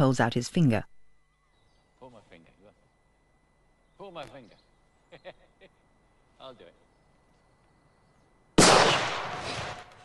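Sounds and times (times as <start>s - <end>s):
speech: 0.0s - 0.9s, 4.0s - 5.8s, 6.4s - 6.8s
gunshot in a film scene: 8.6s - 10.0s.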